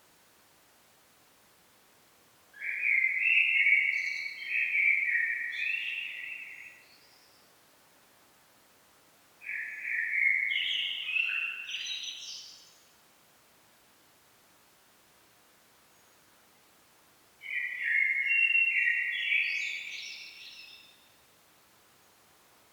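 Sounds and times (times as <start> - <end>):
common blackbird singing: 2.6 - 6.8, 9.5 - 12.5, 17.4 - 20.9.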